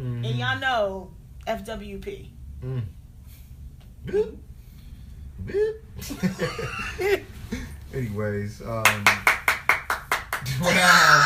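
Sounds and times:
speech: 0.2s - 3.0s, 4.0s - 4.5s, 5.4s - 9.3s, 10.4s - 11.2s
clap-track sound effect handclaps: 8.9s - 10.4s.

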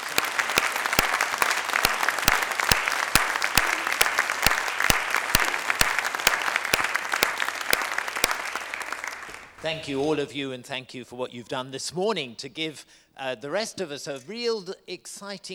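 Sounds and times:
audience round of applause: 0.0s - 9.6s
speech: 9.6s - 15.5s.

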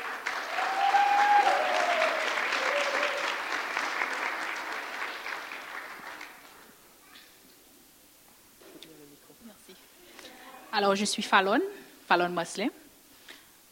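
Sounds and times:
room full of people applauding: 0.0s - 6.7s
speech: 10.8s - 12.8s.

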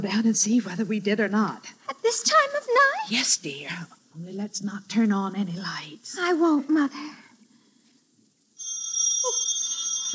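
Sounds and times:
speech: 0.0s - 7.2s
telephone ringing: 8.6s - 10.1s.

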